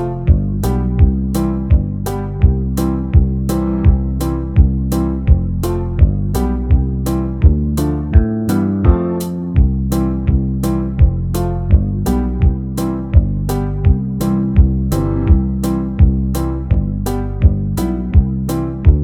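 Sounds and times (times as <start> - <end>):
banjo backing track in the key of C: 0.0 - 19.0.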